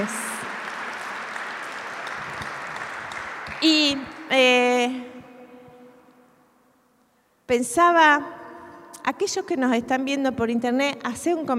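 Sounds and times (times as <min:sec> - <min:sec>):
audience applause: 0:00.0 - 0:04.2
speech: 0:03.6 - 0:05.1, 0:07.5 - 0:08.4, 0:09.1 - 0:11.5.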